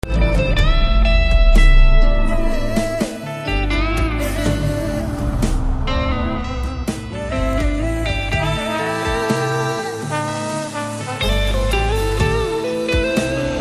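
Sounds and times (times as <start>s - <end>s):
love background music ringtone: 0.0s - 13.6s.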